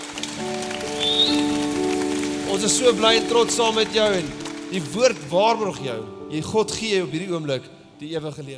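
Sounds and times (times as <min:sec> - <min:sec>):
audience applause: 0:00.0 - 0:05.7
sustained keyboard chords: 0:00.0 - 0:08.5
speech: 0:02.6 - 0:08.5.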